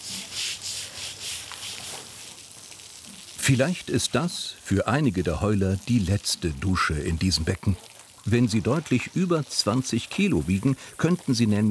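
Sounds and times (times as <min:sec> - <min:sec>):
stiff brush scrubbing algae off a pool floor: 0:00.0 - 0:02.3
speech: 0:03.4 - 0:11.6.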